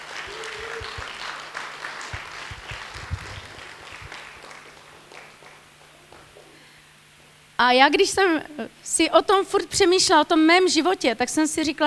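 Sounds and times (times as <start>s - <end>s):
audience applause: 0.0s - 6.6s
speech: 7.6s - 11.8s.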